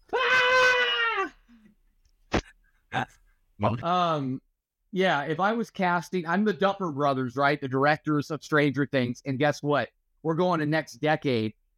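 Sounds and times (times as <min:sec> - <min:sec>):
child screaming in bed: 0:00.1 - 0:01.4
speech: 0:03.0 - 0:11.7.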